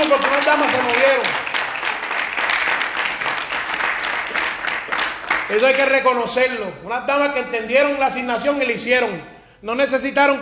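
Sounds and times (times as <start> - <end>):
audience applause: 0.0 - 5.6
speech: 0.1 - 1.4, 5.5 - 10.3.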